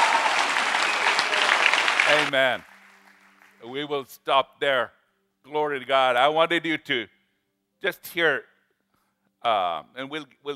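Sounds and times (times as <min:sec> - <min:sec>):
audience clapping: 0:00.0 - 0:03.6
speech: 0:02.1 - 0:02.7, 0:03.6 - 0:07.2, 0:07.8 - 0:08.5, 0:09.4 - 0:10.5.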